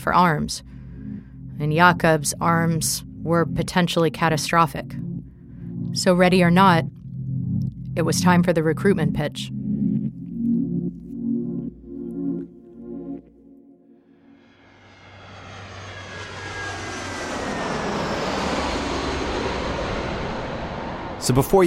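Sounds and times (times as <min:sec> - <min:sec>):
speech: 0:00.0 - 0:05.1, 0:05.9 - 0:07.0, 0:08.0 - 0:09.6, 0:21.3 - 0:21.6
airplane engine roar: 0:00.0 - 0:21.6.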